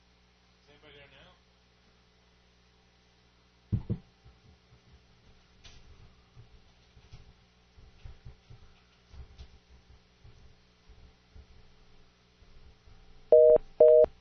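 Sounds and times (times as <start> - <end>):
telephone busy tone: 13.3 - 14.1.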